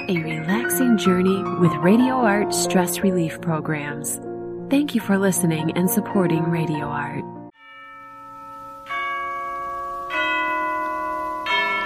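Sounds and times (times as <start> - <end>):
speech: 1.0 - 7.4
tower clock bell striking the hour: 7.5 - 11.8.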